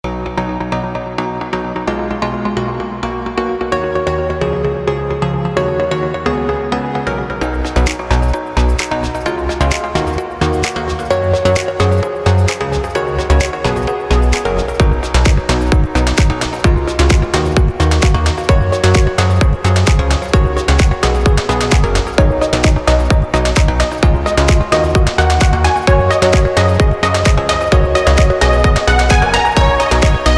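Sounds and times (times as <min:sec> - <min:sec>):
trance synth pluck: 0:00.1 - 0:30.3.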